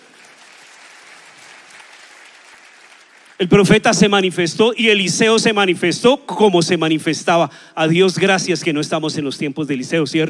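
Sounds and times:
audience applauding loudly: 0.0s - 3.9s
speech: 3.4s - 10.2s.

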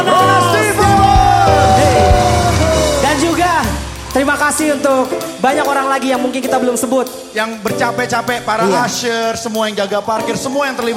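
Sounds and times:
audience applauding: 0.5s - 5.2s
speech: 4.2s - 10.9s.

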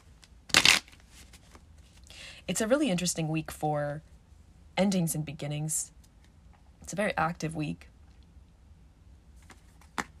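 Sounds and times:
tarot cards being shuffled and drawn: 0.2s - 2.0s, 9.4s - 10.1s
speech: 2.5s - 4.1s, 4.8s - 6.0s, 6.9s - 7.9s.

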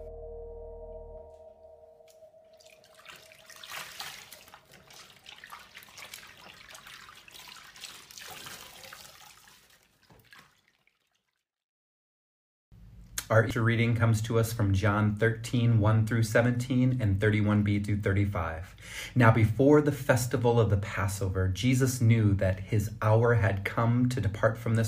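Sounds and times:
low hum: 0.0s - 4.9s
water running and splashing during a foot-washing: 2.5s - 11.4s
speech: 13.3s - 24.8s.

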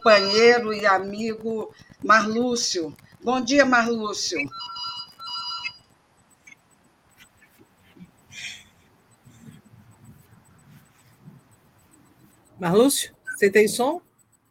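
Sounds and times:
phone ringing with warbling electronic ringtone: 0.0s - 1.2s, 4.5s - 6.0s
speech: 0.0s - 4.8s, 12.6s - 14.1s.

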